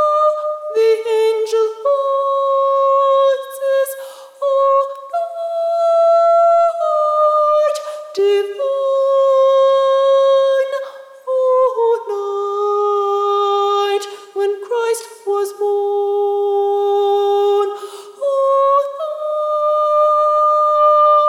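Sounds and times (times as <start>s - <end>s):
first soprano voice singing: 0.0s - 21.2s.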